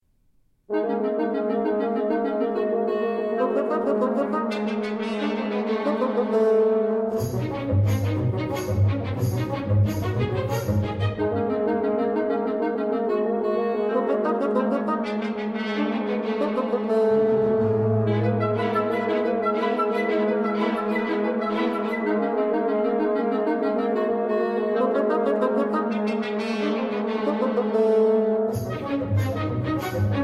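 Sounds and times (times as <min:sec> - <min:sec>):
bassoon and orchestra concerto: 0:00.7 - 0:30.2.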